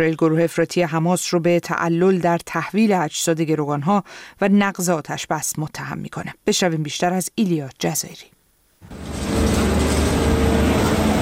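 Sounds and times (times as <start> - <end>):
speech: 0.0 - 9.3
loader diesel engines rumbling at a search site: 8.9 - 11.1.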